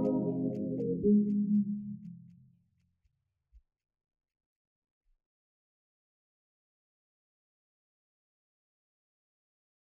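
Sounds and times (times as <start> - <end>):
instrumental music: 0.0 - 2.4.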